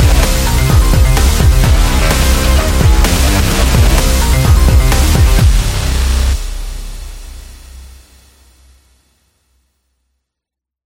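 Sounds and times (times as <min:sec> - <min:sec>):
dubstep rock sport music: 0:00.0 - 0:07.4.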